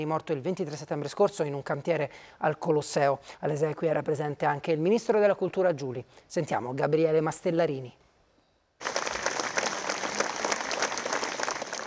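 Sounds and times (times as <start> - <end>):
speech: 0.0 - 8.0
funeral crowd applause: 8.8 - 11.8.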